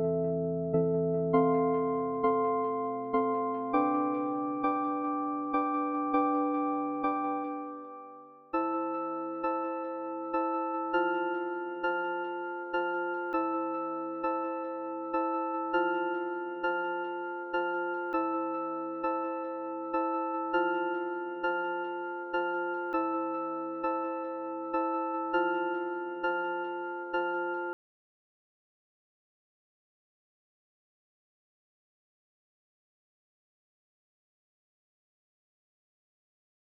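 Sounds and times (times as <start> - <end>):
high keys: 0.0 - 27.8.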